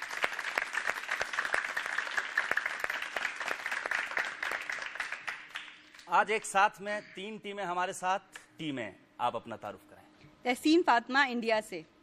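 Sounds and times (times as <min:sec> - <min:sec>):
audience applause welcoming three teams: 0:00.0 - 0:06.5
speech: 0:06.1 - 0:12.0.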